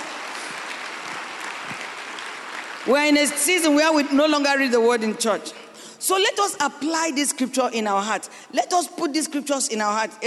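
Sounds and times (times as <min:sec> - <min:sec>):
audience clapping: 0:00.0 - 0:04.0
speech: 0:02.8 - 0:10.2.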